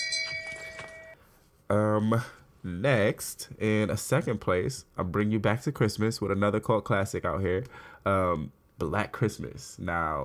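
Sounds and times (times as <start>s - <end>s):
shame bell ringing: 0.0s - 1.2s
speech: 1.7s - 10.2s.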